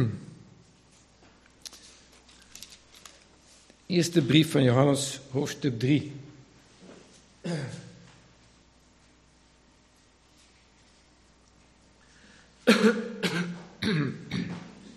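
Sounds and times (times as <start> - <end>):
speech: 0.0 - 0.2, 3.9 - 6.2, 7.4 - 7.8
church service speaker clearing his throat: 0.0 - 0.3, 7.4 - 8.0, 12.6 - 14.8.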